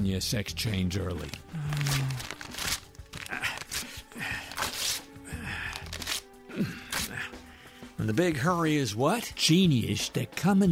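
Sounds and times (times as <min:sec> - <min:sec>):
speech: 0:00.0 - 0:02.0, 0:08.0 - 0:10.6
papers torn up and crumpled to destroy them: 0:01.2 - 0:07.3.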